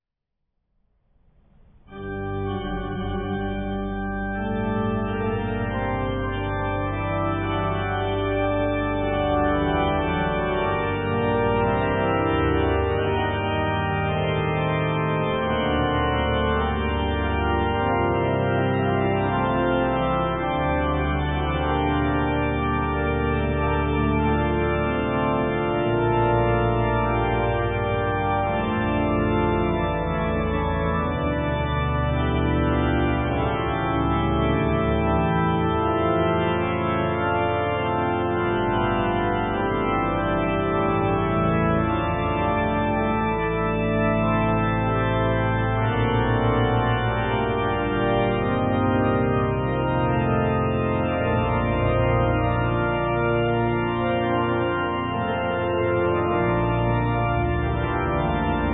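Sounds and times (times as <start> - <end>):
organ prelude: 1.8 - 58.7.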